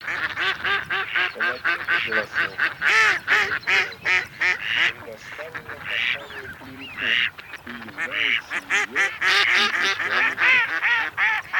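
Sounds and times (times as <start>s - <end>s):
mallard: 0.0s - 11.5s.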